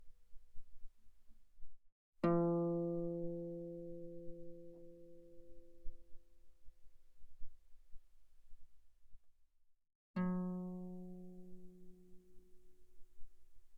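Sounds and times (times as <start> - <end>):
guitar played pianissimo on the E string: 2.2 - 5.8, 10.2 - 12.8.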